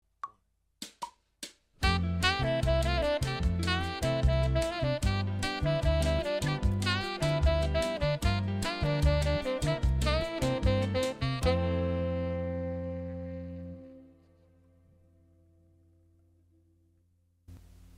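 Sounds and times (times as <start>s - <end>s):
latin music: 1.8s - 14.1s.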